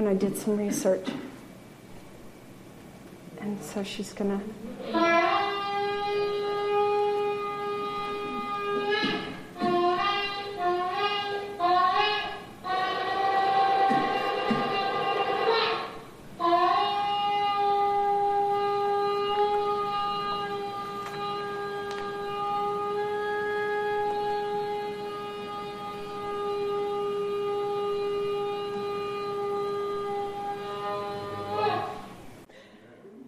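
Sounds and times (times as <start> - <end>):
speech: 0.0 - 1.3, 3.4 - 5.2
ritual horn blasts: 4.8 - 32.2.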